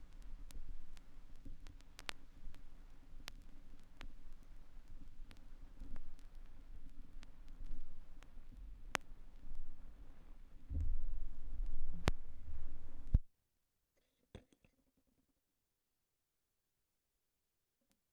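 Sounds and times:
vinyl record noise: 0:00.0 - 0:13.3.

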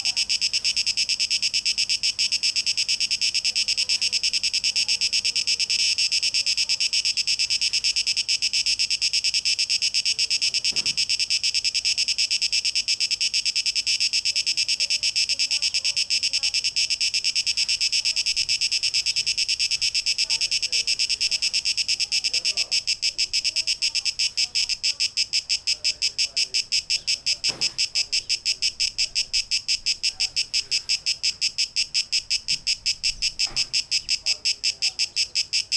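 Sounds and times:
cicadas droning: 0:00.0 - 0:35.7.

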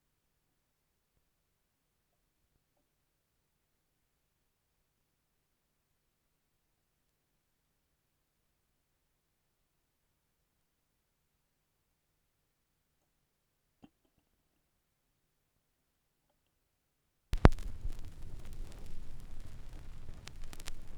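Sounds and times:
vinyl record noise: 0:17.4 - 0:20.9.

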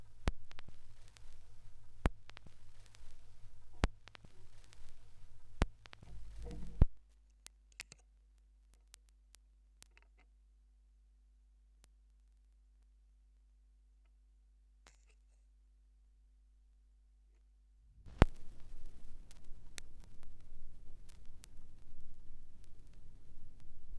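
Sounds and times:
vinyl record noise: 0:00.0 - 0:10.4, 0:11.8 - 0:13.0, 0:18.0 - 0:23.9.

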